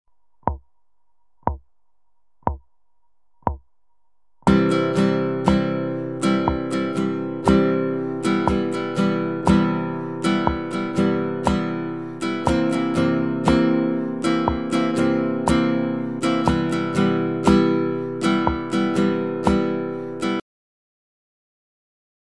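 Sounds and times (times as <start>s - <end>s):
instrument strumming: 4.5s - 20.4s.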